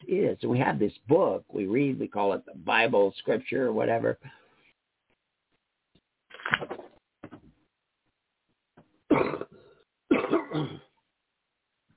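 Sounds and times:
speech: 0.1 - 4.4, 6.4 - 6.9, 9.2 - 9.5
man clearing throat and coughing: 9.1 - 11.0.

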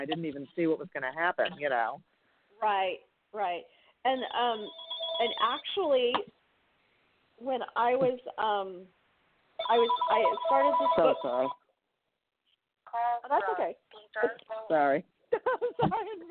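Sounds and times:
speech: 0.0 - 6.4, 7.4 - 9.0, 9.6 - 11.6, 12.9 - 16.2
phone ringtone from a second phone: 4.2 - 5.6, 9.6 - 11.6.

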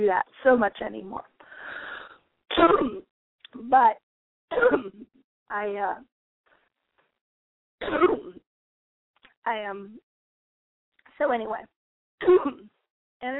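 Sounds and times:
speech: 0.0 - 1.3, 2.6 - 6.1, 7.8 - 8.4, 9.5 - 10.0, 11.2 - 13.3
person coughing: 2.5 - 3.0, 4.5 - 5.0, 7.8 - 8.4, 12.2 - 12.7.

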